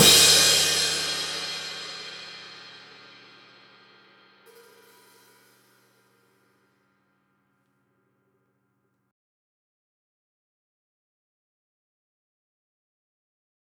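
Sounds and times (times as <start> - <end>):
drums from overhead left microphone: 0.0 - 6.4.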